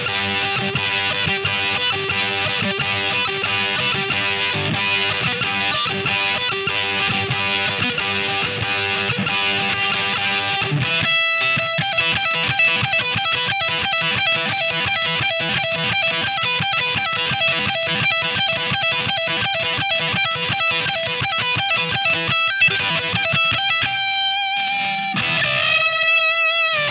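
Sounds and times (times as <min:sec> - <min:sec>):
solo through power boost with buffer in front: 0:00.0 - 0:26.9.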